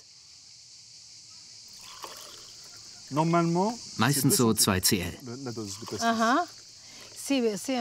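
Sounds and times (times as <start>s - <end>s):
pastis being poured into a glass: 1.8s - 2.8s
speech: 3.1s - 6.6s, 7.3s - 7.8s.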